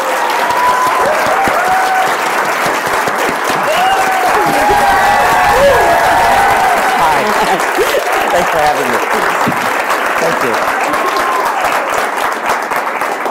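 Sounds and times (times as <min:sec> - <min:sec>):
audience of actors applauding a guest actor: 0:00.0 - 0:13.2
laughter: 0:02.7 - 0:11.5
scattered voices: 0:04.0 - 0:11.2
speech: 0:08.5 - 0:09.6.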